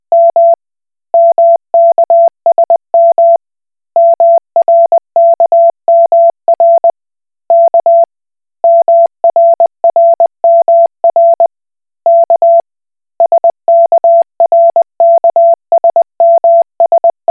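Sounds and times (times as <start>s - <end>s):
Koch Morse code beeps: 0.1s - 0.6s, 1.2s - 3.4s, 4.0s - 6.9s, 7.5s - 8.1s, 8.7s - 11.5s, 12.1s - 12.6s, 13.2s - 17.3s.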